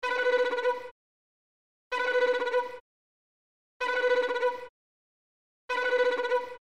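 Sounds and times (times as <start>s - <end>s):
violin: 0.0s - 1.0s, 1.9s - 2.8s, 3.8s - 4.7s, 5.7s - 6.6s.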